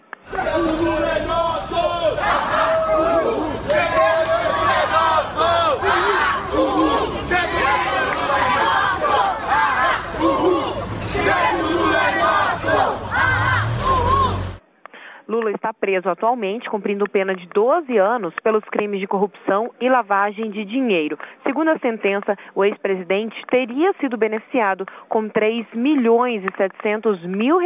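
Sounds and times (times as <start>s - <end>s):
protesters shouting slogans: 0.2s - 14.6s
speech: 15.8s - 27.6s.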